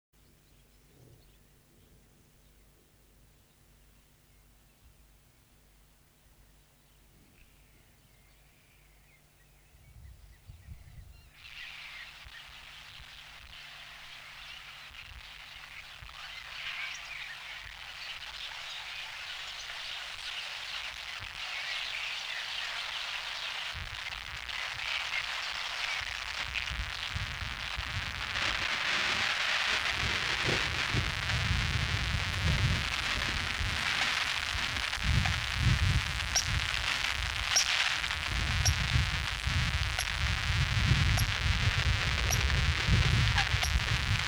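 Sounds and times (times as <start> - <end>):
radioactive rain: 12.2 - 44.2.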